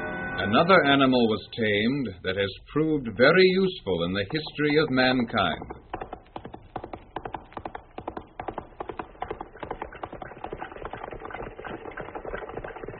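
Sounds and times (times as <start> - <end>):
speech: 0.4 - 5.9
horse-drawn wagons rolling: 4.0 - 12.9.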